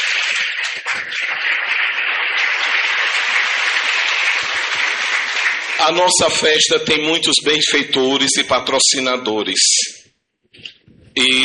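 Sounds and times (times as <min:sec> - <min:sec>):
warm applause: 0:00.0 - 0:07.9
speech: 0:05.8 - 0:09.9, 0:11.2 - 0:11.4.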